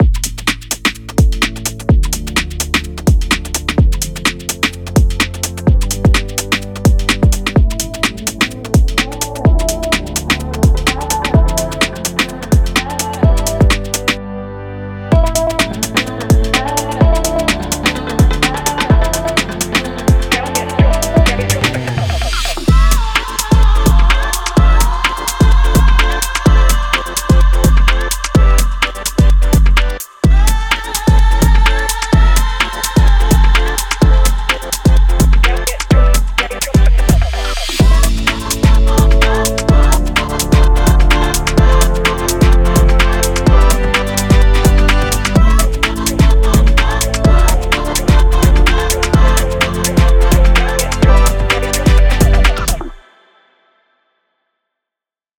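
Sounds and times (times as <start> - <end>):
activating beat: 0.0 - 14.2, 15.1 - 53.0.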